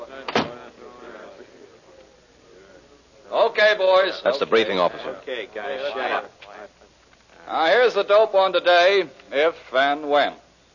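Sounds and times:
murmur of voices: 0:00.0 - 0:09.6
door shutting: 0:00.3 - 0:00.6
speech: 0:03.3 - 0:06.4, 0:07.5 - 0:10.4.

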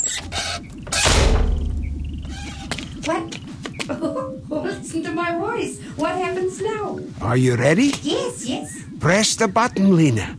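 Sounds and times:
door shutting: 0:00.0 - 0:03.2
speech: 0:03.1 - 0:10.3.

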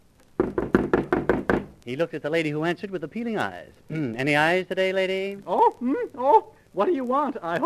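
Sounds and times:
loud sharp knocks pounding on a door: 0:00.4 - 0:01.8
speech: 0:01.9 - 0:07.6.

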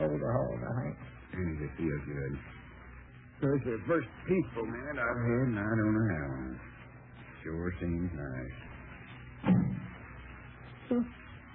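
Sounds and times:
speech: 0:00.3 - 0:01.1, 0:01.7 - 0:02.7, 0:03.4 - 0:06.8, 0:07.4 - 0:08.7, 0:10.9 - 0:11.2
back door closing: 0:09.4 - 0:09.9.

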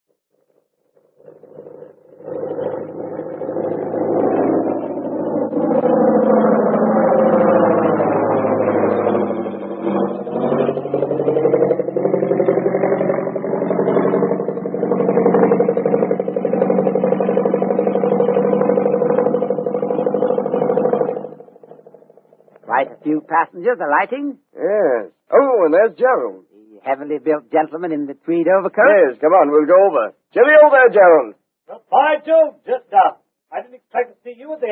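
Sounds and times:
airplane arriving with engines running: 0:01.3 - 0:23.1
speech: 0:23.2 - 0:34.7.

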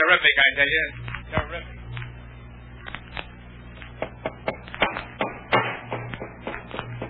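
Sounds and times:
speech: 0:00.1 - 0:01.8
hammering a wooden crate shut: 0:04.0 - 0:07.0.

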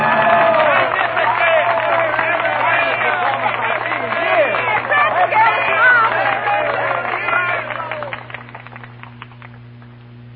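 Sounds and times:
excited voices and cheers: 0:00.0 - 0:08.3
theatre audience applause: 0:00.0 - 0:10.3.

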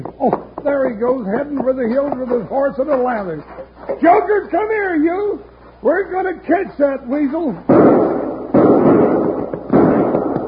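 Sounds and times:
speech: 0:00.0 - 0:08.2
gunshots: 0:07.7 - 0:10.4.

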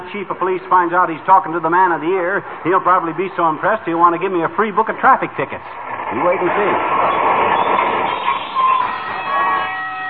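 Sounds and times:
streetcar rumbling while pulling up at a stop: 0:00.0 - 0:10.0
speech: 0:00.1 - 0:07.3
thin high metallic squeals from wheels or brakes: 0:07.1 - 0:10.0.

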